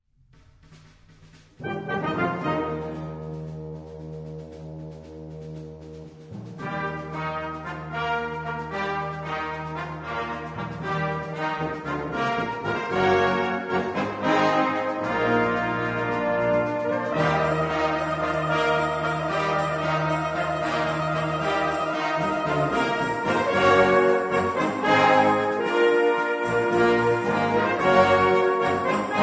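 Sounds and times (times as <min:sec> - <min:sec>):
fanfare: 0:01.6 - 0:03.6, 0:05.8 - 0:29.2
hymn: 0:06.6 - 0:29.2.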